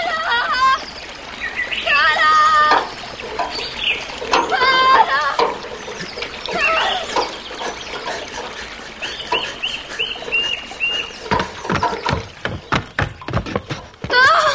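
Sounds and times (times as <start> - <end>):
clear cold spring water bubbling over a sandy bed: 0.0 - 14.5.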